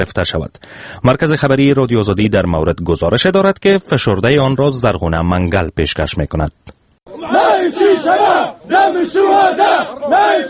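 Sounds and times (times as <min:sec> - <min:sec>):
speech: 0:00.0 - 0:10.4
anti-Gaddafi militia fighters chanting and shouting in Benghazi, Libya: 0:07.1 - 0:10.4.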